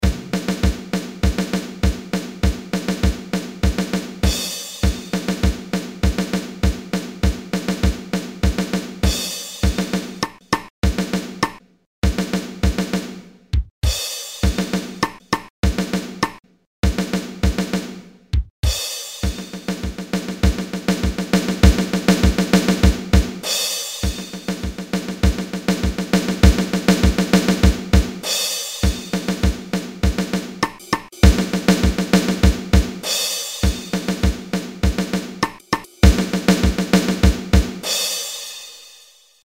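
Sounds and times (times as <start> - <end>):
drum march: 0.0 - 38.2.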